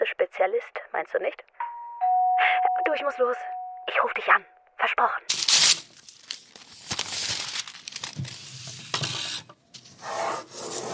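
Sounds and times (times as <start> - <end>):
speech: 0.1 - 1.6, 2.4 - 5.7
drawing strokes sketching an eleven-storey high-rise and a wall crack: 9.0 - 10.9.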